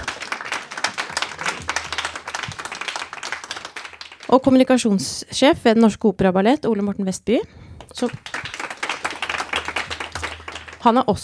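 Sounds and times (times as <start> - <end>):
audience clapping: 0.0 - 4.8, 7.8 - 11.1
speech: 4.3 - 8.4, 10.8 - 11.2.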